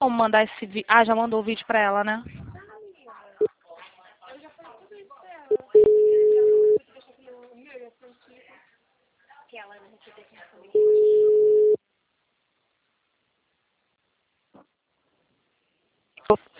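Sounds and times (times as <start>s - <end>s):
speech: 0.0s - 2.4s, 16.3s - 16.5s
telephone busy tone: 5.8s - 6.8s, 10.8s - 11.8s.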